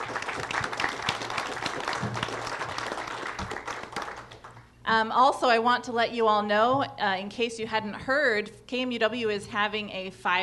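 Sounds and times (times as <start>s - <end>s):
audience applause: 0.0s - 4.6s
speech: 4.9s - 10.4s.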